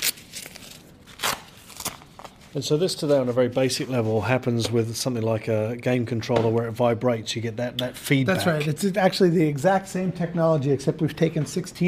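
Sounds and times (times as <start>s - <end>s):
Velcro strap being fastened on belt: 0.0s - 2.4s
speech: 2.5s - 11.8s.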